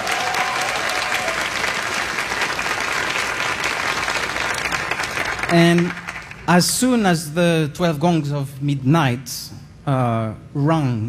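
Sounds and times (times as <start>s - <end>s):
audience applause: 0.0s - 6.5s
speech: 5.5s - 11.0s.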